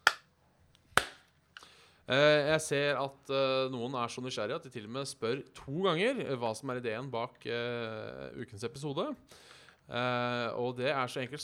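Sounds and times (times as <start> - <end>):
single hand clap: 1.0 - 1.2
speech: 2.1 - 11.4.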